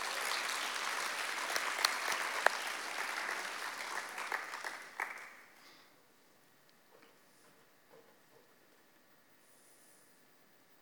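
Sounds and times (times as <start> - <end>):
audience applause welcoming a speaker: 0.0 - 5.5.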